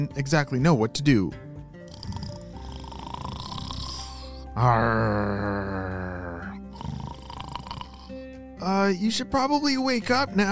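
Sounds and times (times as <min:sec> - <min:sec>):
speech: 0:00.0 - 0:01.4, 0:04.6 - 0:06.1, 0:08.6 - 0:10.4
person imitating a pirate snoring: 0:01.8 - 0:08.3.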